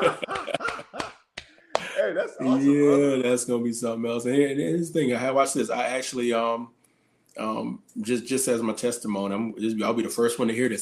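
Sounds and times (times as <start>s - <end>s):
snickering laughter: 0.0s - 1.1s
people clapping hands: 0.0s - 2.0s
speech: 2.4s - 6.8s, 7.4s - 10.8s.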